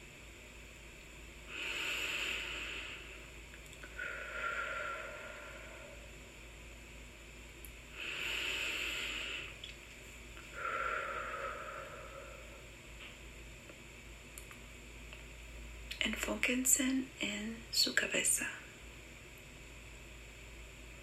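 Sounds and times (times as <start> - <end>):
deep breathing during a guided relaxation exercise: 1.4 - 6.4, 7.9 - 9.6, 10.4 - 13.1
speech: 16.3 - 18.6.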